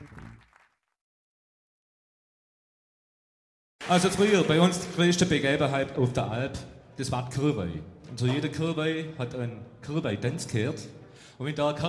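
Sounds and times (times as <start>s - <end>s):
audience applause: 0.0s - 0.9s, 3.8s - 5.2s
speech: 3.9s - 11.8s.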